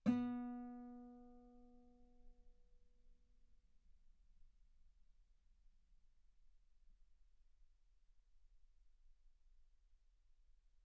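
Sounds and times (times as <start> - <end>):
guitar note B3: 0.0 - 1.2.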